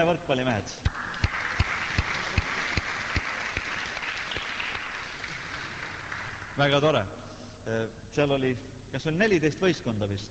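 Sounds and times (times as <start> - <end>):
speech: 0.0 - 1.0, 6.6 - 10.3
audience applause: 0.9 - 6.8.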